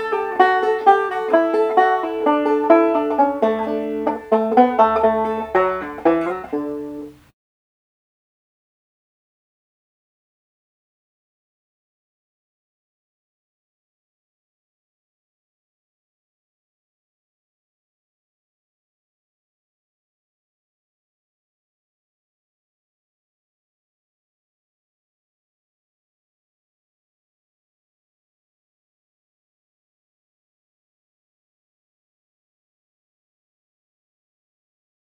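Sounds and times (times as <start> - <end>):
banjo playing a folk tune: 0.0 - 7.2.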